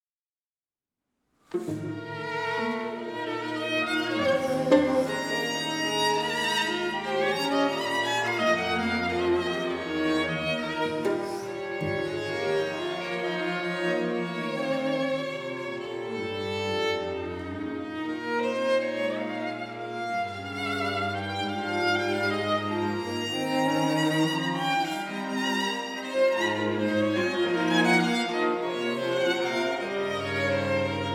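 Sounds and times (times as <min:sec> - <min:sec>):
string quartet: 0:01.5 - 0:31.1.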